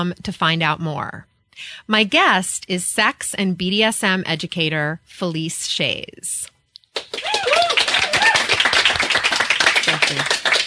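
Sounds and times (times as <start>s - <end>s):
speech: 0.0s - 6.5s, 10.1s - 10.4s
live studio audience clapping: 6.9s - 10.6s.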